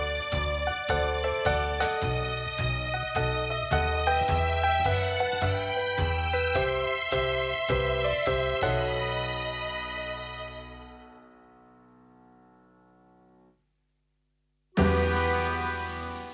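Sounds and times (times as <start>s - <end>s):
backing music: 0.0s - 11.2s, 14.8s - 16.3s.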